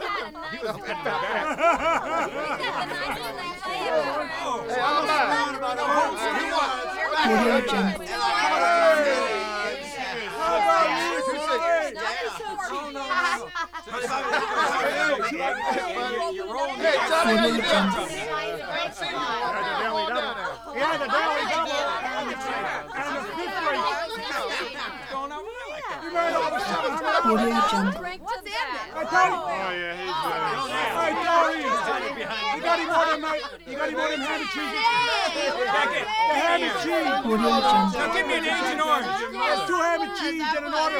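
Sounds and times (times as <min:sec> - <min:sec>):
people hollering in a bar: 0:00.0 - 0:11.5, 0:16.8 - 0:20.1, 0:26.2 - 0:28.2, 0:30.1 - 0:40.9
laughter: 0:00.0 - 0:28.3, 0:29.0 - 0:40.9
rowdy bar conversation: 0:00.0 - 0:40.9.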